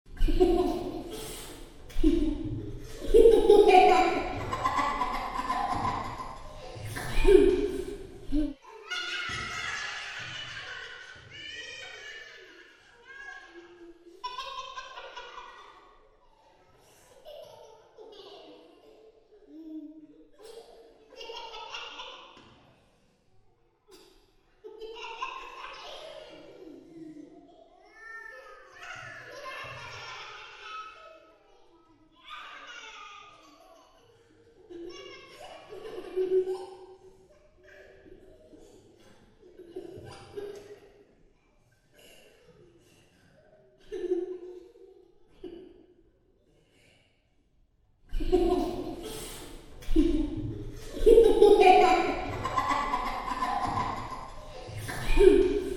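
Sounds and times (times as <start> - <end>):
creepy ghost children laughing: 0.1 - 16.2, 20.4 - 22.4, 24.6 - 27.5, 28.8 - 31.0, 32.4 - 38.7, 48.1 - 55.7.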